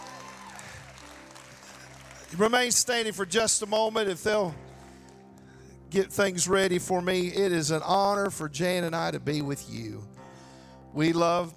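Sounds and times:
audience hand clapping: 0.0 - 5.2
speech: 2.3 - 4.7, 5.9 - 10.1, 10.9 - 11.5.

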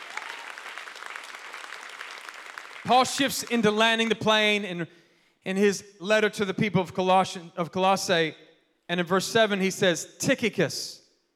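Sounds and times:
audience clapping hands: 0.0 - 3.9
speech: 2.8 - 11.0.

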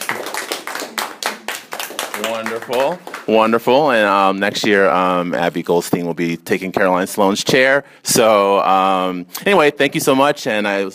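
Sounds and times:
group clapping applause: 0.0 - 3.9
speech: 2.2 - 10.9.

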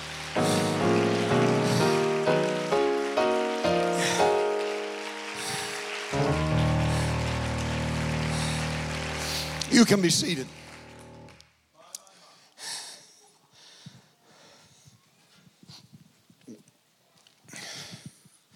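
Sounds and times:
keyboard or organ chords: 0.0 - 11.4
audience clapping: 0.0 - 11.6
speech: 9.8 - 10.6.

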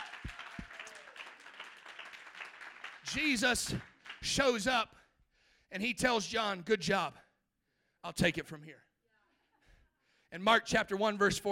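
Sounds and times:
audience clapping hands: 0.0 - 4.8
speech: 3.1 - 5.0, 5.7 - 7.2, 8.0 - 8.9, 10.3 - 11.4.

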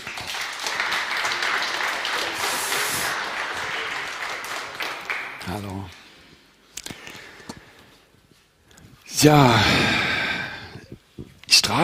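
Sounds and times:
audience applause: 0.0 - 6.1
speech: 5.5 - 6.0, 9.2 - 9.9.

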